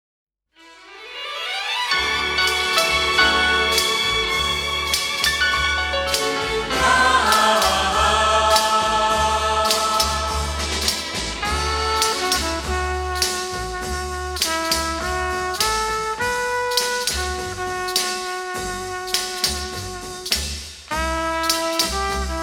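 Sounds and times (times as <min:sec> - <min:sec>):
orchestra playing: 0:00.6 - 0:22.4
chorus singing: 0:02.0 - 0:12.4.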